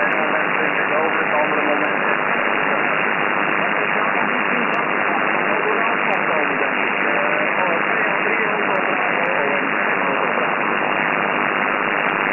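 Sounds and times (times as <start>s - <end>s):
80m SSB amateur radio band with low interference: 0.0s - 12.3s.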